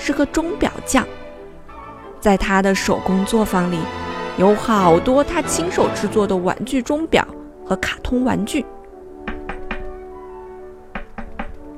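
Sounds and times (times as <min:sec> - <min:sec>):
speech: 0:00.0 - 0:01.2, 0:02.2 - 0:08.8
firm knocking on a door: 0:09.3 - 0:09.9, 0:10.9 - 0:11.6.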